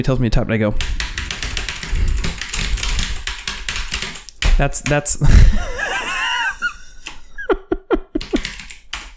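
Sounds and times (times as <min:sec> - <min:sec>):
speech: 0:00.0 - 0:01.0, 0:04.6 - 0:05.9
typing on a clicky computer keyboard: 0:00.8 - 0:05.0, 0:08.2 - 0:09.1
laughter: 0:05.2 - 0:08.2.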